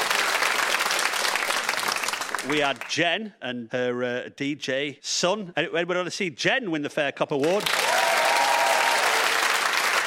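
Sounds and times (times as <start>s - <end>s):
audience round of applause: 0.0s - 2.9s, 7.4s - 10.0s
speech: 2.4s - 8.0s.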